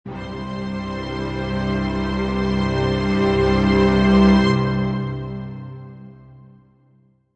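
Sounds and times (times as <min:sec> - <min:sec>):
orchestral strings intro loop in C major: 0:00.1 - 0:05.8.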